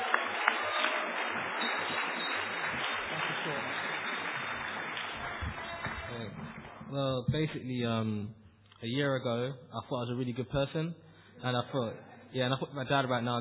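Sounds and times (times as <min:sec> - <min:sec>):
audience applause: 0:00.0 - 0:06.9
speech: 0:07.0 - 0:13.3.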